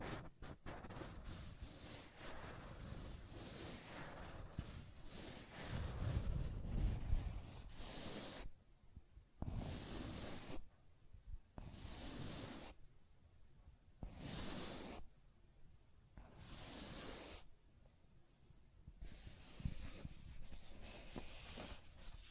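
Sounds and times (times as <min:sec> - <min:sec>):
dry scratching and tracing on a surface: 0:00.0 - 0:08.6, 0:09.4 - 0:10.7, 0:11.6 - 0:12.8, 0:14.0 - 0:15.1, 0:16.2 - 0:17.5, 0:19.0 - 0:22.3.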